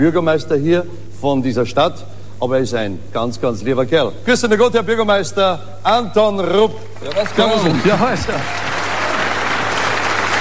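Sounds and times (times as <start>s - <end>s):
speech: 0.0s - 8.7s
audience applause: 7.0s - 10.3s.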